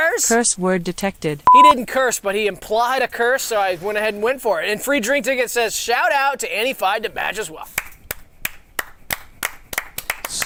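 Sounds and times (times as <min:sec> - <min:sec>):
speech: 0:00.2 - 0:07.8
hands clapping: 0:07.7 - 0:10.4.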